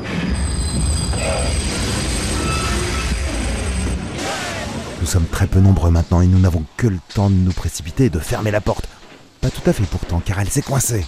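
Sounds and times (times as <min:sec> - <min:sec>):
high-pitched train wheel squeal: 0:00.0 - 0:05.0
train rumbling: 0:00.0 - 0:10.9
speech: 0:05.1 - 0:08.8, 0:09.4 - 0:11.0.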